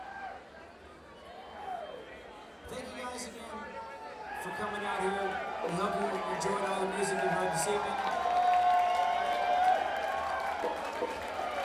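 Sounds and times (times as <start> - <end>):
speech: 4.4 - 8.2
large concert audience applauding and cheering: 6.2 - 11.6.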